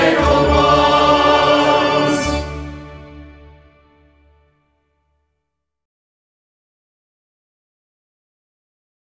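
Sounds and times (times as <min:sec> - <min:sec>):
choir singing: 0:00.0 - 0:04.4.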